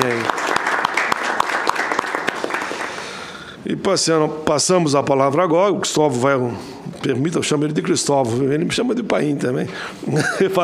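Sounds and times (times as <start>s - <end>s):
audience applause: 0.0s - 3.2s
speech: 3.7s - 10.6s.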